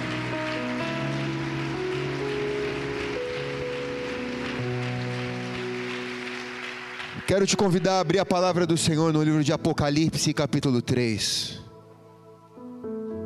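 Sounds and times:
crowd clapping: 0.0 - 9.0
sustained keyboard chords: 0.0 - 13.2
speech: 7.3 - 11.6.

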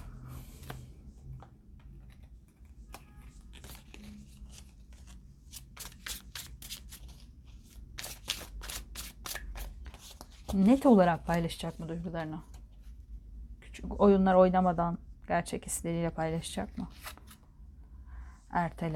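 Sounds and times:
low steady hum: 0.0 - 18.9
tarot cards being shuffled and handled: 1.8 - 7.3, 8.0 - 10.9, 16.8 - 17.4
speech: 10.6 - 12.5, 14.0 - 17.1, 18.5 - 18.9.

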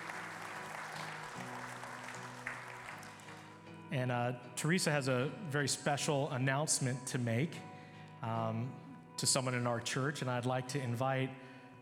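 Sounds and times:
church audience applause welcoming a woman to the stage: 0.0 - 3.6
speech: 3.9 - 11.4.

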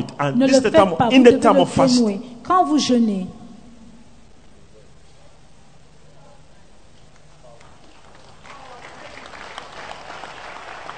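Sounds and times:
speech: 0.0 - 3.4
audience clapping hands: 7.1 - 10.9.

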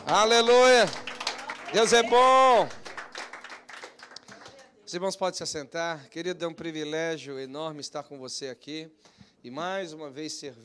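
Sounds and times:
round of applause: 0.0 - 4.6
speech: 0.1 - 1.1, 1.7 - 2.8, 4.9 - 10.6.

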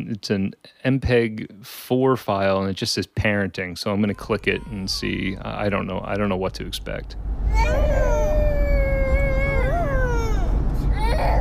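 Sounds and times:
speech: 0.1 - 8.1
children crying in a car: 4.0 - 6.7, 7.5 - 11.3
children screaming in a car: 4.0 - 11.3.

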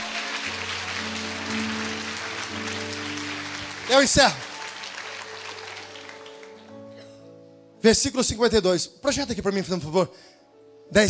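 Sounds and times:
audience applause: 0.0 - 6.9
speech: 3.9 - 4.4, 7.8 - 11.0.

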